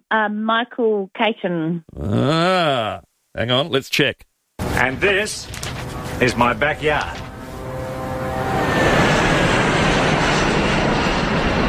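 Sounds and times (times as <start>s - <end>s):
speech: 0.1s - 7.3s
Airbus airliner on a Brisbane via Sydney flight passing low near a runway: 5.8s - 11.6s.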